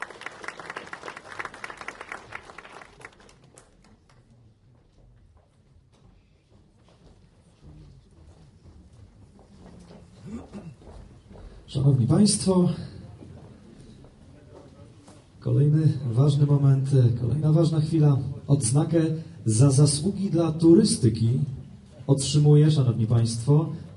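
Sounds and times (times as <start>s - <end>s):
audience applause at an award ceremony for tourism merit badges: 0.0s - 4.2s
speech: 11.7s - 12.9s, 16.0s - 23.9s.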